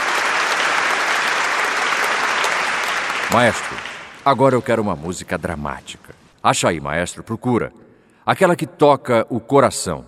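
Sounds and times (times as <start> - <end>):
audience applause: 0.0 - 4.9
speech: 3.3 - 10.0.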